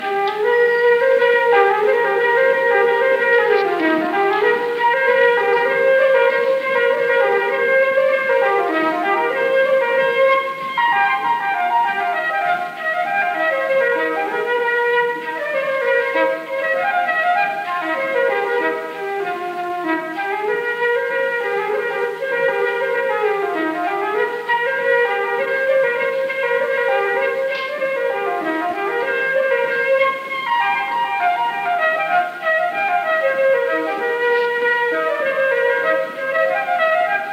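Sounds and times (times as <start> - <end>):
flute: 0.0 - 37.3.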